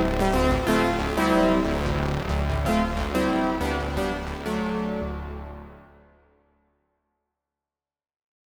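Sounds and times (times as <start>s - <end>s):
brassy analog synthesizer: 0.0s - 6.2s.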